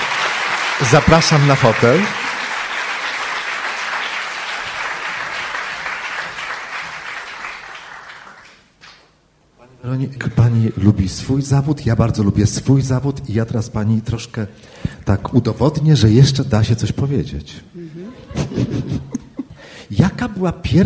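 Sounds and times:
audience applause: 0.0s - 9.0s
speech: 0.8s - 2.2s, 10.0s - 18.0s, 20.0s - 20.8s
laughter: 18.0s - 19.6s.

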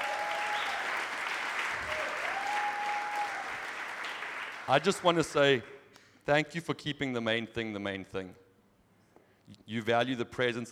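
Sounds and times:
audience clapping: 0.0s - 5.6s
speech: 4.7s - 5.7s, 6.3s - 8.4s, 9.5s - 10.6s.

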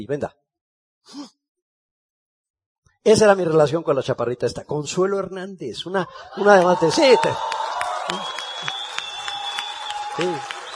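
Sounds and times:
speech: 0.0s - 0.4s, 1.0s - 1.4s, 3.0s - 8.7s, 10.2s - 10.5s
audience applause: 6.4s - 10.7s.

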